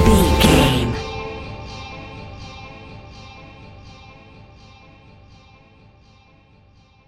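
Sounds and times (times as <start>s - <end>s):
electronic club music stinger: 0.1s - 1.0s.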